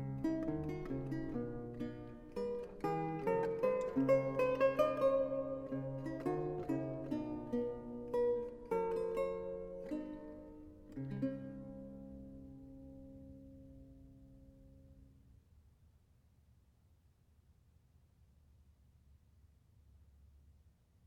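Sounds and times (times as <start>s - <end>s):
lute solo: 0.0s - 15.2s.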